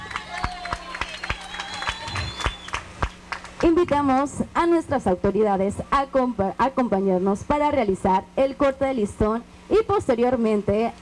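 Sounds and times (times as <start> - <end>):
audience applause: 0.0 - 3.7
speech: 3.6 - 11.0.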